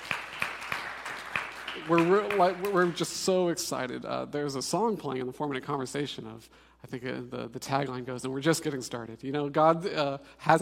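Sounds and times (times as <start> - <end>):
scattered clapping: 0.0 - 3.1
sharp handclaps: 0.0 - 3.2
speech: 1.8 - 10.5.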